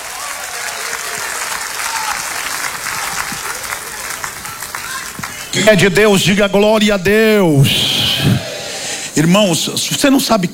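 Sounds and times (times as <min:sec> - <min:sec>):
audience applause: 0:00.0 - 0:06.6
speech: 0:05.6 - 0:08.5, 0:09.2 - 0:10.5.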